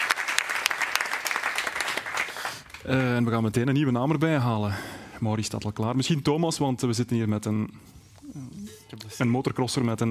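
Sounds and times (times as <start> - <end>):
audience applause: 0.0 - 3.2
speech: 2.8 - 10.0.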